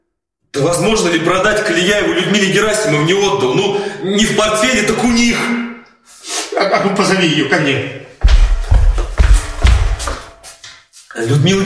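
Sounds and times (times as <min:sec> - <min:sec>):
speech: 0:00.6 - 0:05.7, 0:06.6 - 0:08.0, 0:11.2 - 0:11.6
knocking on a door: 0:08.2 - 0:10.3.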